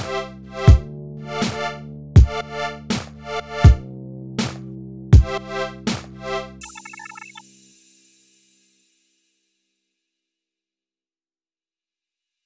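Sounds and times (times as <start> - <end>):
lofi music: 0.0 - 7.0.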